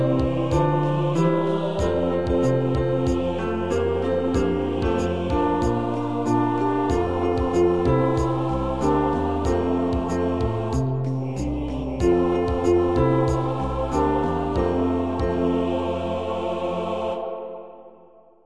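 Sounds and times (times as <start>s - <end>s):
alto voice singing fast: 0.0s - 18.3s.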